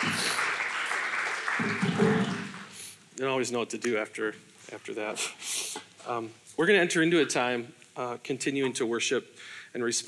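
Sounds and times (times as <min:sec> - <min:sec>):
audience clapping at a church worship gathering: 0:00.0 - 0:02.8
speech: 0:03.2 - 0:10.0.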